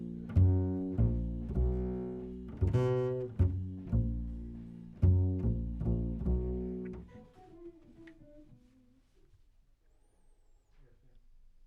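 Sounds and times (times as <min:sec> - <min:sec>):
bass: 0:00.0 - 0:08.4.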